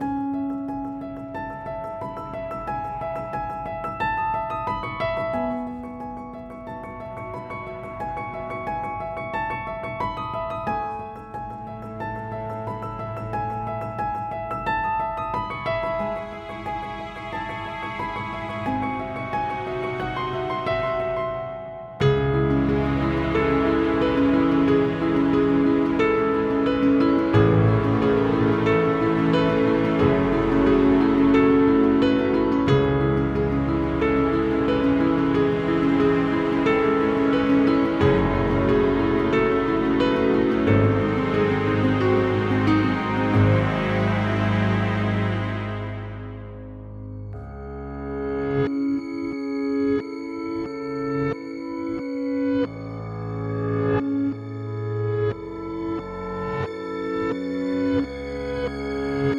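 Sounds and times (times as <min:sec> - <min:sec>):
happy piano music: 0:00.0 - 0:54.4, 0:55.1 - 0:59.3.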